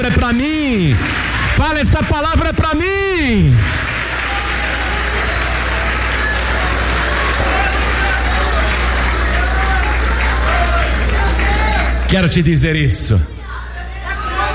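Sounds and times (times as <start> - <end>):
speech: 0.0 - 3.9, 12.1 - 13.4
audience clapping: 0.0 - 12.4
crowd voices: 3.4 - 14.5.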